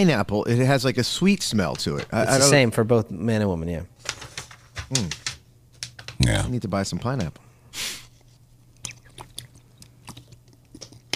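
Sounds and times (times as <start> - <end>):
speech: 0.0 - 3.9, 4.9 - 5.2, 6.2 - 7.5
person drinking: 8.2 - 11.1.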